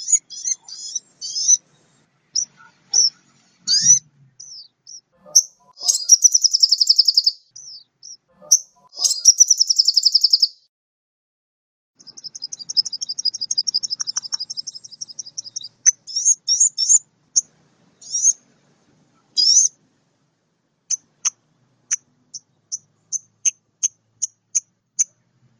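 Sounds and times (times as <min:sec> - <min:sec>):
Oriental magpie-robin singing trills, repeated notes, whistles and chips: 0:00.0 - 0:10.6, 0:12.0 - 0:18.4, 0:19.2 - 0:19.8, 0:20.9 - 0:25.2.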